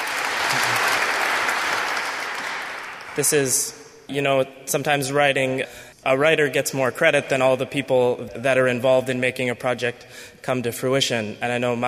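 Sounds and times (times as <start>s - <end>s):
audience applause: 0.0s - 3.4s
speech: 3.2s - 11.8s.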